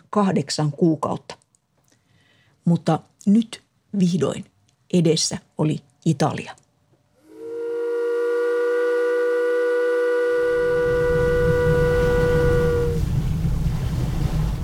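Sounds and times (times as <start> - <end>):
speech: 0.1 - 1.4, 2.6 - 6.6
steamship whistle: 7.2 - 13.2
rumbling engine or water noise: 10.4 - 14.6.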